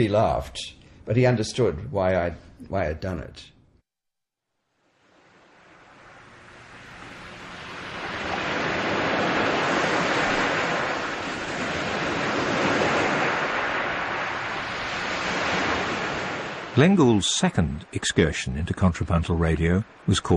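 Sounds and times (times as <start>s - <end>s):
speech: 0.0s - 3.5s, 16.8s - 20.3s
sea waves sucking and boiling: 4.7s - 20.3s.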